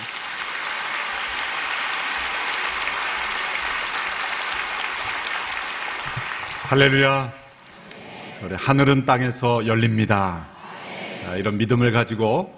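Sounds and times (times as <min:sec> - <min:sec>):
audience applauding warmly: 0:00.0 - 0:07.9
speech: 0:06.7 - 0:07.4, 0:08.4 - 0:10.5, 0:11.3 - 0:12.5.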